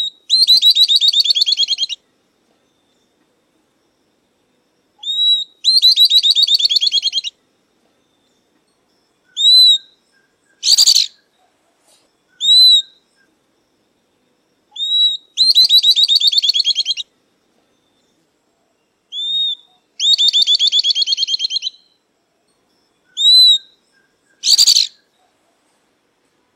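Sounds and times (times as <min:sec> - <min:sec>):
southern beardless-tyrannulet song: 0:00.0 - 0:02.0, 0:05.0 - 0:07.3, 0:09.3 - 0:11.3, 0:12.0 - 0:13.0, 0:14.8 - 0:17.1, 0:19.1 - 0:22.0, 0:23.1 - 0:25.2.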